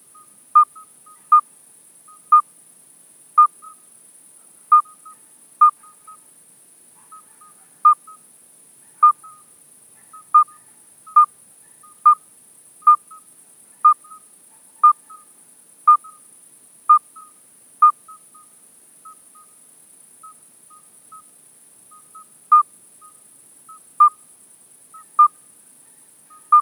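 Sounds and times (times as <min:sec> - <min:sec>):
midwife toad Alytes obstetricans calling: 0:00.1 - 0:01.5, 0:02.1 - 0:02.5, 0:03.4 - 0:03.8, 0:04.7 - 0:06.2, 0:07.0 - 0:08.2, 0:09.0 - 0:15.3, 0:15.9 - 0:16.3, 0:16.9 - 0:19.6, 0:20.2 - 0:21.3, 0:21.9 - 0:24.3, 0:24.9 - 0:25.4, 0:26.3 - 0:26.6.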